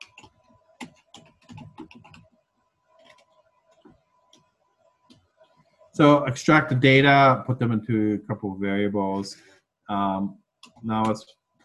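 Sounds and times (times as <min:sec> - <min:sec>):
typing on a computer keyboard: 0:00.0 - 0:02.3, 0:03.0 - 0:03.8
speech: 0:06.0 - 0:11.4.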